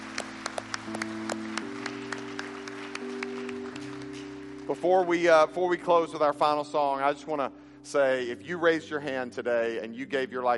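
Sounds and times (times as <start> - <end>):
audience applause: 0.0 - 4.8
sustained organ or keyboard chord: 0.0 - 10.5
speech: 4.7 - 10.5.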